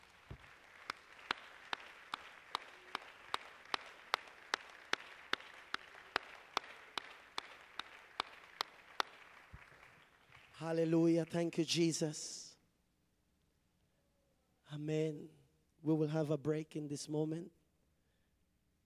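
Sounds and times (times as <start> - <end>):
audience applause: 0.0 - 10.7
speech: 10.6 - 12.4, 14.9 - 17.6.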